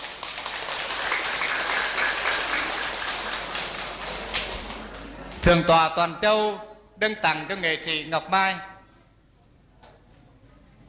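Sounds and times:
audience applause welcoming artists at a Buddhist congregation's ceremony: 0.0s - 5.4s
speech: 5.4s - 8.7s.

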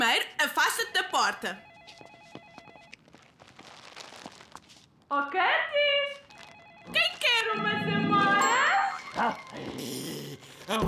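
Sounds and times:
speech: 0.0s - 1.7s, 5.1s - 6.2s, 9.2s - 10.8s
telephone ringing with a warbling electronic tone: 0.5s - 3.2s, 6.1s - 9.6s.

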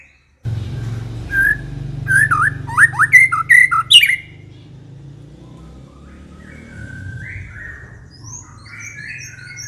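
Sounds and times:
aggressive white-rumped shama song with rapid trills and descending slurred notes: 0.5s - 4.9s.

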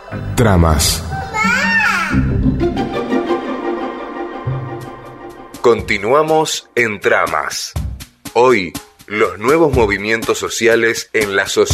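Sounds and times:
speech: 0.1s - 2.6s, 5.6s - 7.8s, 8.4s - 11.7s
child crying: 1.2s - 2.2s
tonal hum: 2.1s - 6.8s.

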